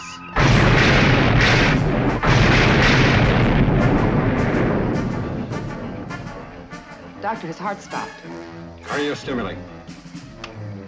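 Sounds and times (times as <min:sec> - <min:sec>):
starship firing photon torpedoes in a wide scatter: 0:00.4 - 0:06.8
speech: 0:07.3 - 0:09.8.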